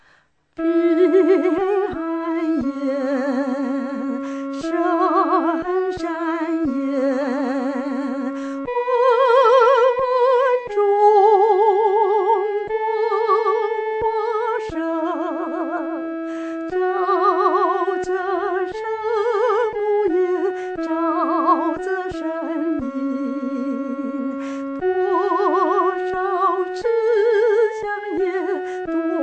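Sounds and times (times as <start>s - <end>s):
solo singing first voice part: 0.6s - 29.2s.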